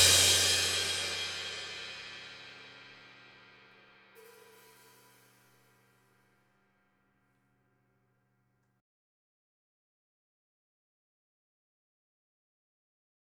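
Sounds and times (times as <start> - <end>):
drums in stereo: 0.0 - 5.8.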